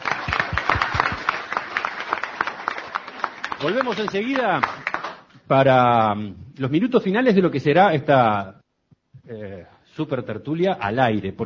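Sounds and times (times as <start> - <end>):
audience applause: 0.0 - 5.3
speech: 3.6 - 4.8, 5.5 - 8.6, 9.3 - 11.4.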